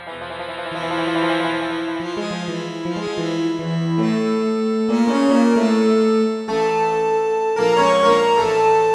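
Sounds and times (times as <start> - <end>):
intro music on a Yamaha MU5 tone generator: 0.0 - 8.8.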